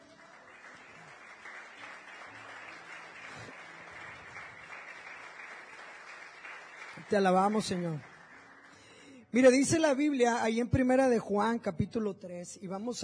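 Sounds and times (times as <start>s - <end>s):
audience applause: 0.0s - 9.1s
speech: 7.1s - 8.1s, 9.3s - 13.0s.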